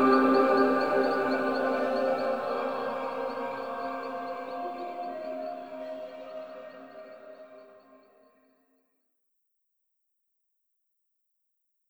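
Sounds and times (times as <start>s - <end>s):
forest and hills ambience at night: 0.0s - 8.0s.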